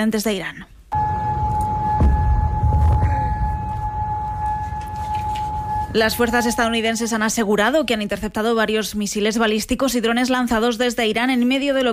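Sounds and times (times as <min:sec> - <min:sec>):
speech: 0:00.0 - 0:00.7, 0:06.0 - 0:11.9
air raid sirens: 0:00.9 - 0:07.3.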